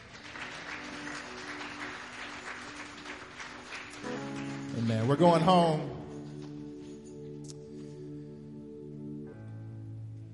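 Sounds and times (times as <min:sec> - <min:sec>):
audience clapping hands: 0:00.0 - 0:06.5
speech: 0:04.8 - 0:05.9.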